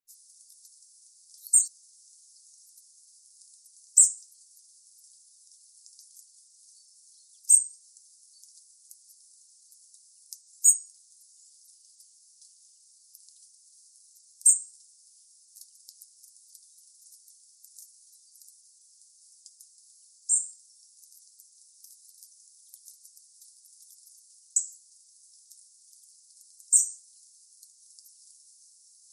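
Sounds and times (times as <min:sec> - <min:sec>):
faint high hiss: 0:00.1 - 0:29.1
European robin calling: 0:01.4 - 0:01.7, 0:04.0 - 0:04.2, 0:06.7 - 0:08.5, 0:10.6 - 0:10.9, 0:26.7 - 0:27.0.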